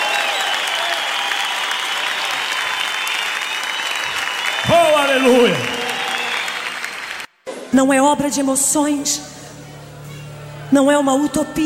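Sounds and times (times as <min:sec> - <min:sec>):
audience applauding: 0:00.0 - 0:07.4
speech: 0:07.8 - 0:09.4, 0:10.7 - 0:11.6.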